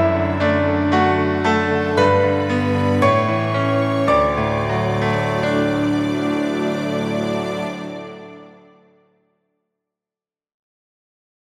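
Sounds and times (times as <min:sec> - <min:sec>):
orchestral montage music: 0:00.0 - 0:09.0.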